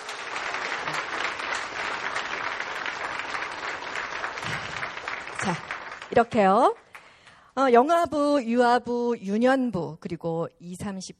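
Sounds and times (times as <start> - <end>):
audience applause: 0.0 - 6.8
speech: 5.4 - 6.8, 7.6 - 11.1.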